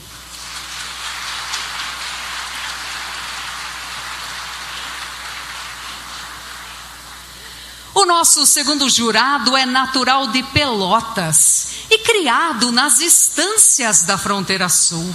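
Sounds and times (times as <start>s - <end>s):
audience applause: 0.0s - 7.6s
speech: 8.0s - 15.1s.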